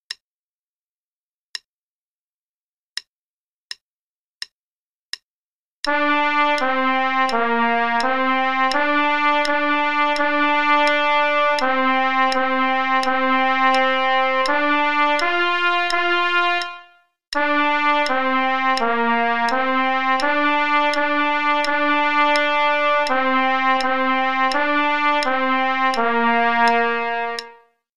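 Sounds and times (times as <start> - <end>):
trumpet play-along: 5.9 - 27.8.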